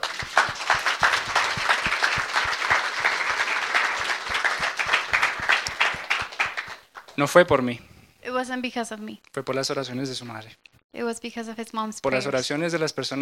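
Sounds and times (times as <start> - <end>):
audience applause: 0.0 - 7.2
speech: 7.2 - 13.1.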